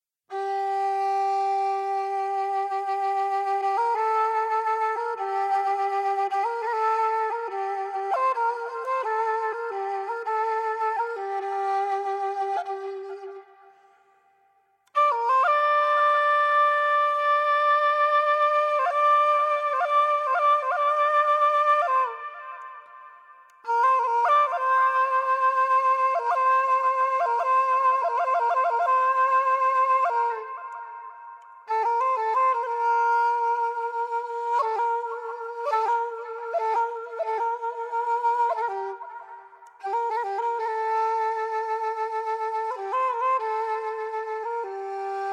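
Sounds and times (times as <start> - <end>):
ney flute solo: 0.3 - 45.3.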